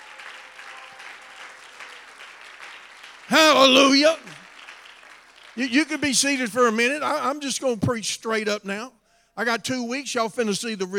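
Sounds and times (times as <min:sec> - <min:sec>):
audience hand clap of praise: 0:00.0 - 0:06.4
speech: 0:03.6 - 0:04.4, 0:05.6 - 0:10.9.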